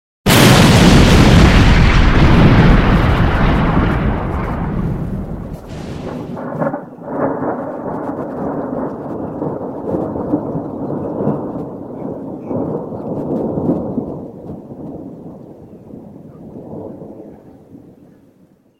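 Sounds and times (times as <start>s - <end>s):
explosion: 0.3s - 11.6s.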